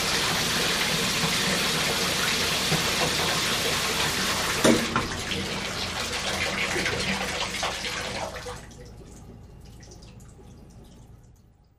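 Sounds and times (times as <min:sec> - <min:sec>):
shower turning off: 0:00.0 - 0:08.4
shower running: 0:00.0 - 0:11.4.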